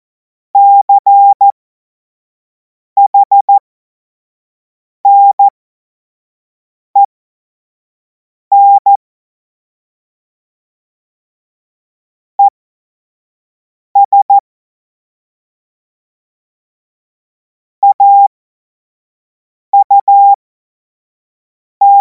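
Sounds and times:
Morse code tones for a Morse course: 0.6 - 1.5, 3.0 - 3.5, 5.1 - 5.5, 8.5 - 9.0, 14.0 - 14.4, 19.8 - 20.4.

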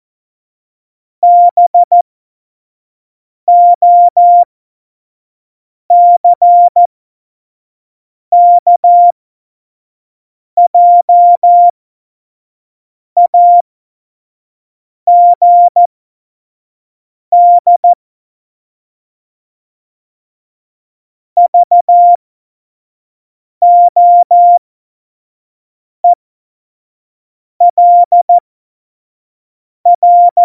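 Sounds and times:
CW Morse code at tempo 70: 1.2 - 2.0, 3.5 - 4.4, 5.9 - 6.9, 8.4 - 9.1, 10.7 - 11.7, 13.2 - 13.6, 15.1 - 15.9, 17.4 - 18.0, 21.4 - 22.2, 23.6 - 24.6, 27.6 - 28.4, 29.9 - 30.4.

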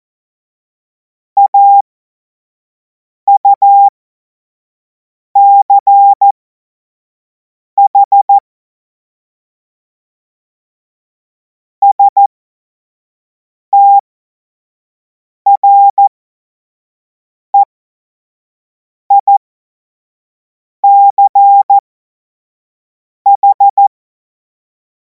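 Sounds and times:
Morse code course tones: 1.4 - 1.8, 3.3 - 3.9, 5.4 - 6.3, 7.9 - 8.3, 11.8 - 12.3, 13.8 - 14.0, 15.5 - 16.1, 20.8 - 21.8, 23.3 - 23.9.

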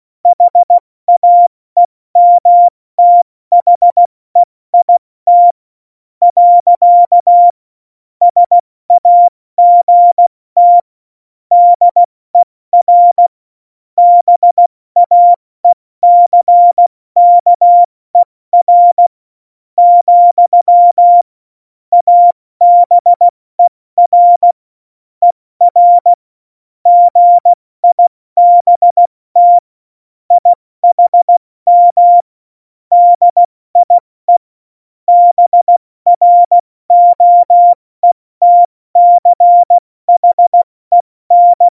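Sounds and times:
CW Morse code beeps: 0.3 - 1.5, 2.2 - 5.6, 6.2 - 7.6, 8.3 - 10.8, 11.5 - 12.1, 12.8 - 13.3, 14.0 - 17.9, 18.6 - 19.1, 19.8 - 21.2, 21.9 - 24.6, 25.6 - 26.2, 26.9 - 29.7, 30.3 - 32.3, 32.9 - 34.4, 35.1 - 41.7.

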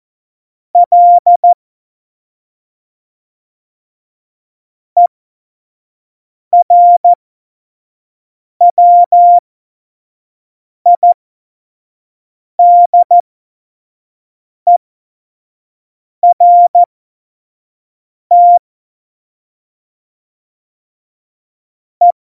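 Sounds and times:
CW Morse code beeps: 0.8 - 1.6, 6.6 - 7.2, 8.7 - 9.4, 10.9 - 11.2, 12.6 - 13.2, 16.2 - 16.9, 18.3 - 18.6.

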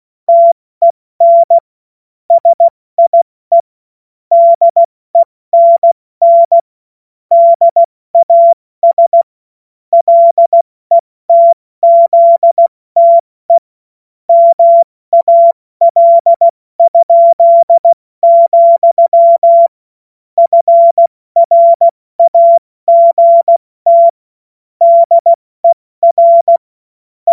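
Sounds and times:
CW Morse code beeps: 0.3 - 0.6, 1.2 - 1.6, 2.3 - 3.7, 4.3 - 6.6, 7.3 - 9.3, 9.9 - 13.6, 14.3 - 19.7, 20.4 - 24.2, 24.8 - 26.6.

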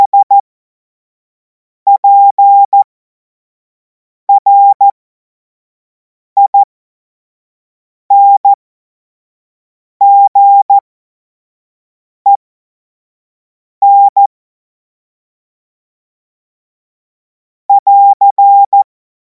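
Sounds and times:
morse code beeps: 0.0 - 0.4, 1.9 - 2.8, 4.3 - 4.9, 6.5 - 6.7, 8.1 - 8.6, 10.0 - 10.8, 13.8 - 14.3, 17.7 - 18.8.

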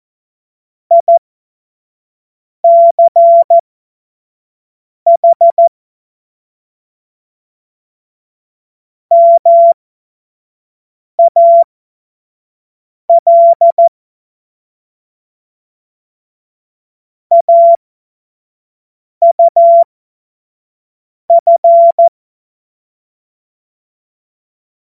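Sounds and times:
CW Morse code beeps: 0.9 - 1.2, 2.6 - 3.6, 5.1 - 5.7, 9.1 - 9.8, 11.2 - 11.7, 13.1 - 13.9, 17.3 - 17.8, 19.2 - 19.9, 21.3 - 22.1.

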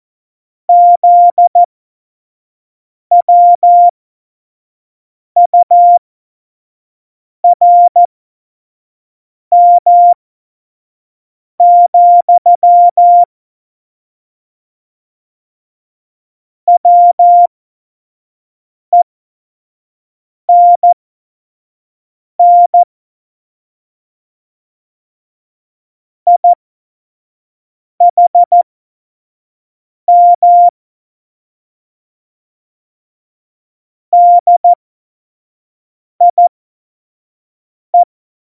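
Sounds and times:
CW Morse code beeps: 0.7 - 1.7, 3.1 - 3.9, 5.5 - 6.0, 7.5 - 8.1, 9.5 - 10.2, 11.6 - 13.3, 16.7 - 17.5, 20.5 - 21.0, 22.4 - 22.9, 26.3 - 26.6, 28.1 - 28.6, 30.1 - 30.7, 34.2 - 34.8, 36.2 - 36.5.

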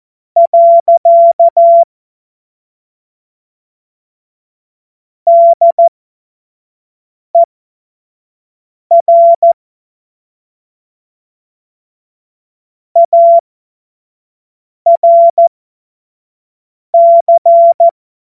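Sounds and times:
CW Morse code beeps: 0.4 - 1.9, 5.3 - 5.9, 8.9 - 9.6, 13.0 - 13.4, 14.9 - 15.5, 17.0 - 17.9.

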